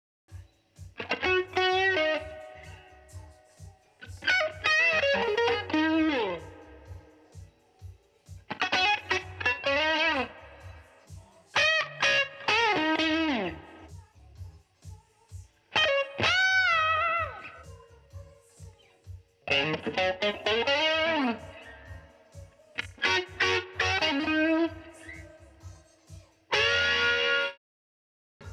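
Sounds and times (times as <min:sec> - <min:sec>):
guitar filler: 0:00.8 - 0:07.3, 0:08.5 - 0:13.9, 0:15.7 - 0:17.7, 0:19.4 - 0:25.4, 0:26.5 - 0:27.6.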